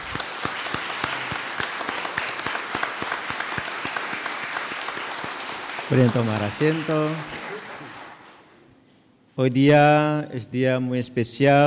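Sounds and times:
crowd applauding: 0.0s - 8.7s
speech: 5.9s - 7.4s, 9.4s - 11.6s.

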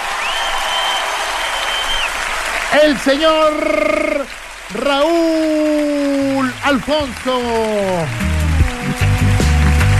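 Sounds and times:
studio audience clapping on a live Spanish-language program: 0.0s - 9.9s
long high whistle: 0.2s - 2.2s
speech: 2.7s - 5.9s, 6.6s - 8.2s.

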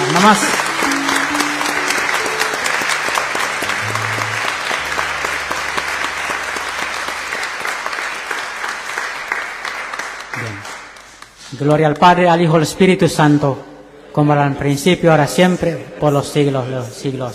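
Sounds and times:
audience applause: 0.0s - 11.4s
speech: 0.2s - 0.6s, 11.6s - 17.3s.

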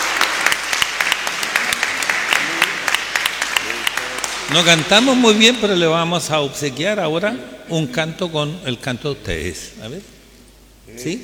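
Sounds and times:
crowd clapping: 0.0s - 5.7s
speech: 4.5s - 10.2s, 10.9s - 11.2s.

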